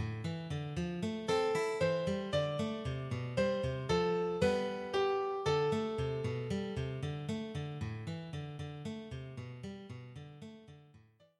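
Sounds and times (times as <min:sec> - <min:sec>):
piano accompaniment: 0:00.0 - 0:08.6
guitar accompaniment: 0:00.0 - 0:10.9.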